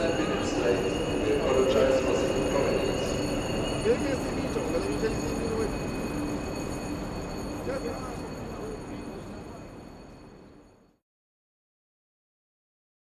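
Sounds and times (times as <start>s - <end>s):
railway ambience: 0.0s - 11.0s.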